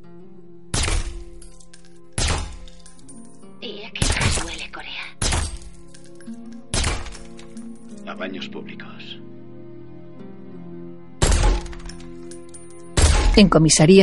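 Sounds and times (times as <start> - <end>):
steady tonal backdrop: 0.0 - 14.0
suppressed gunshots fired into wooden planks: 0.7 - 1.5, 2.2 - 2.8, 4.0 - 5.9, 6.7 - 7.6, 11.2 - 12.0, 12.9 - 13.5
speech: 8.2 - 9.2, 13.4 - 14.0.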